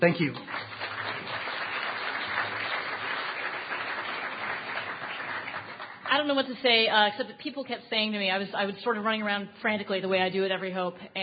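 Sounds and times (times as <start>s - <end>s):
speech: 0.0s - 0.6s, 6.1s - 11.2s
crowd applause: 0.0s - 6.1s.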